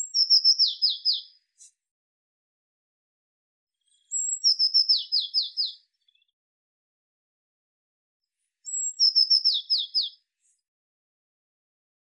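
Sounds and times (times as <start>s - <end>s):
Eurasian blue tit calling: 0.0s - 1.3s, 4.1s - 5.8s, 8.7s - 10.2s.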